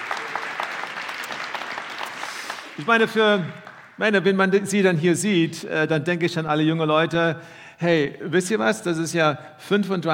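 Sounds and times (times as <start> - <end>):
church congregation applauding to welcome members: 0.0 - 4.1
speech: 2.8 - 10.1.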